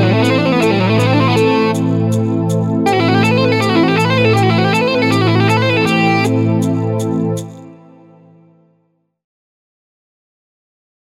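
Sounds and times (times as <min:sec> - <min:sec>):
metal legato: 0:00.0 - 0:07.7.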